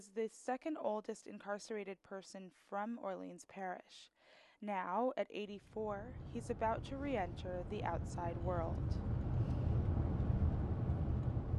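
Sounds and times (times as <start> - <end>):
speech: 0.0 - 9.2
car driving onto Louisiana 66 state highway, heard from inside: 6.1 - 11.5.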